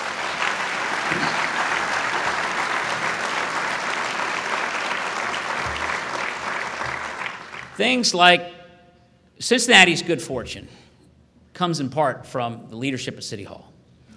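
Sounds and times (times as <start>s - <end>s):
audience applause: 0.0s - 7.8s
speech: 7.8s - 8.6s, 9.4s - 10.9s, 11.6s - 13.7s.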